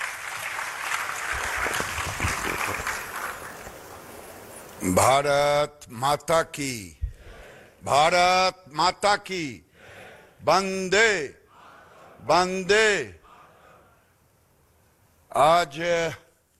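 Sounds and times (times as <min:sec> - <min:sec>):
audience applause at a National Handloom Day event: 0:00.0 - 0:04.1
speech: 0:04.8 - 0:07.0, 0:07.8 - 0:09.6, 0:10.4 - 0:11.4, 0:12.2 - 0:13.2, 0:15.4 - 0:16.2.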